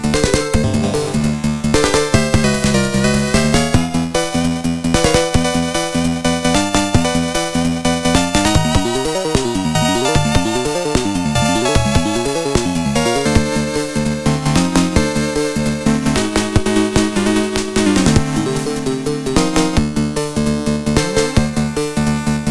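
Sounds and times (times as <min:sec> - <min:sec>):
game stage background music: 0:00.1 - 0:22.4.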